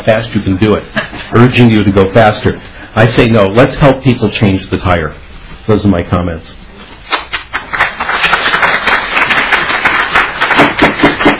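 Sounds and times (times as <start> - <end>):
speech: 0.0 - 6.6
audience applause: 7.2 - 11.3.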